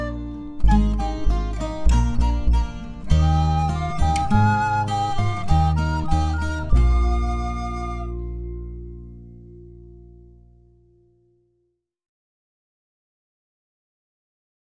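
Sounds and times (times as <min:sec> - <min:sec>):
instrumental music: 0:00.0 - 0:11.0.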